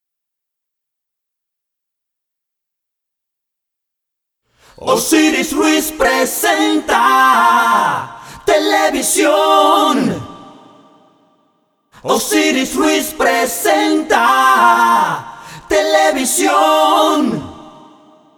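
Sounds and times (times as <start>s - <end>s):
voices singing an a cappella jingle: 4.6s - 11.4s, 12.0s - 18.3s.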